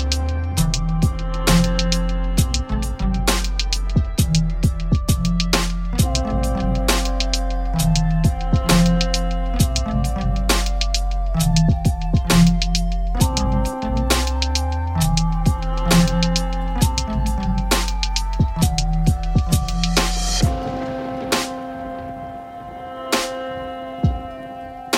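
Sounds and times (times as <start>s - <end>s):
emotional lofi beat: 0.0s - 24.9s
rain atmosphere: 20.2s - 24.9s.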